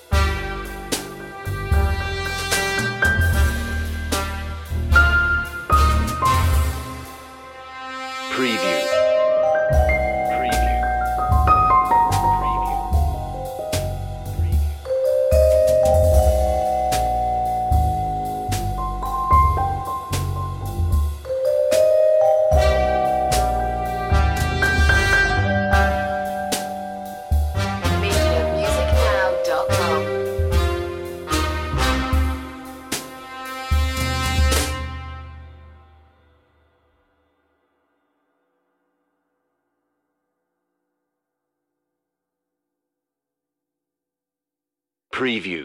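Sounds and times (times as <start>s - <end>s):
lounge music: 0.0s - 7.7s, 8.4s - 35.0s.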